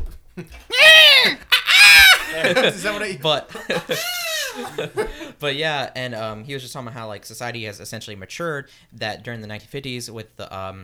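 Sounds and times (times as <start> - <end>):
speech: 0.4 - 1.5, 2.3 - 10.8
laughter: 0.4 - 5.4
person imitating a bald eagle's screech: 0.7 - 2.4.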